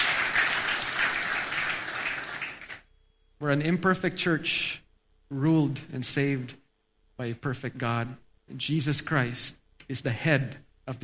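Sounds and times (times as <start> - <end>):
audience clapping in praise: 0.0 - 2.9
speech: 3.4 - 6.6, 7.2 - 11.0.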